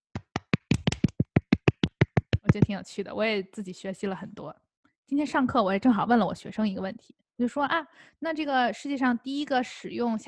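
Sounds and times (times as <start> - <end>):
clapping: 0.2 - 2.5
speech: 2.6 - 10.2.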